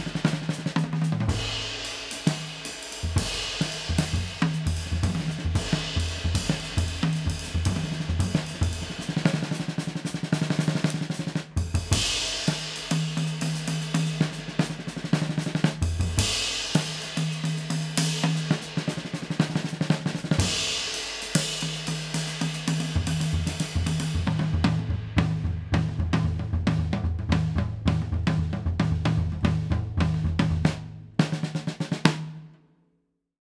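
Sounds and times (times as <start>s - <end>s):
solo drums building tension: 0.0s - 32.6s.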